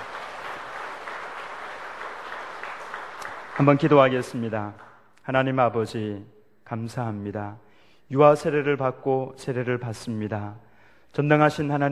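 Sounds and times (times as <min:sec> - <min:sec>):
audience applauding: 0:00.0 - 0:05.0
speech: 0:03.6 - 0:11.9.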